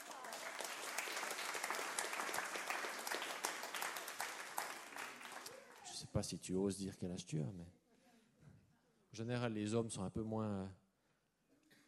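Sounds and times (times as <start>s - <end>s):
audience applause: 0.0s - 6.0s
speech: 6.2s - 7.8s, 9.2s - 10.8s.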